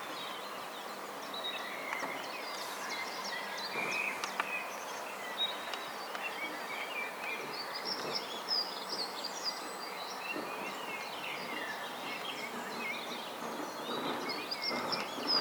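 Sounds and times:
faint mixed bird sounds: 0:00.0 - 0:15.3.

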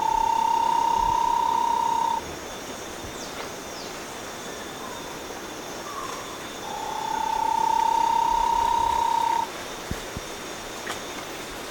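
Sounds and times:
Bahia tapaculo calling: 0:00.0 - 0:02.2, 0:06.0 - 0:09.5.

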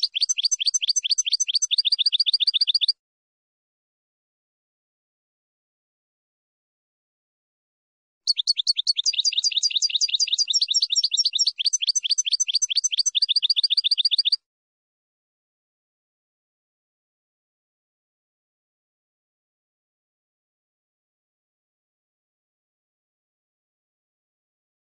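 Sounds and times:
finch song: 0:00.0 - 0:03.0, 0:08.3 - 0:14.4.

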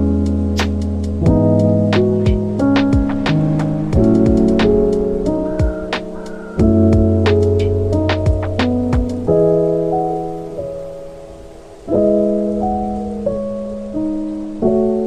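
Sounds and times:
music: 0:00.0 - 0:15.0
rain: 0:00.0 - 0:15.0
thunder: 0:01.2 - 0:09.2.

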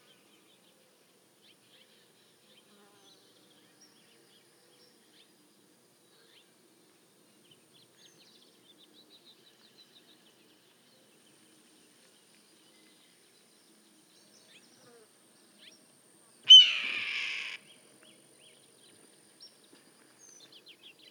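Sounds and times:
red-tailed hawk giving hoarse raspy screams: 0:16.5 - 0:17.6.

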